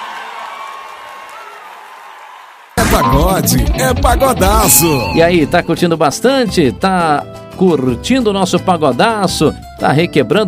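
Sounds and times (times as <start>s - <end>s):
audience applause at a pagode show: 0.0s - 2.8s
audience whooping at a pagode show: 0.0s - 5.7s
speech: 3.0s - 10.4s.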